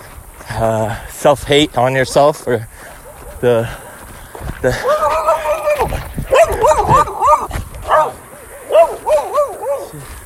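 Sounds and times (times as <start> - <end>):
speech: 0.6 - 2.7, 3.4 - 3.8, 4.6 - 4.9
dog barking and yipping: 2.0 - 3.9, 4.8 - 10.1.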